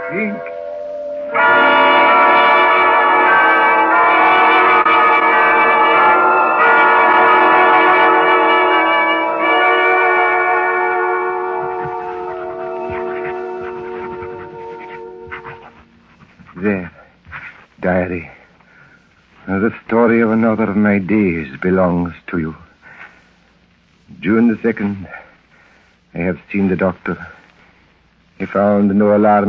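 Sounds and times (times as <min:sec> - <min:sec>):
church bells ringing: 0:00.0 - 0:16.8
speech: 0:00.1 - 0:00.6, 0:18.1 - 0:18.3, 0:19.6 - 0:22.6, 0:24.2 - 0:25.2, 0:26.2 - 0:27.4, 0:28.4 - 0:29.4.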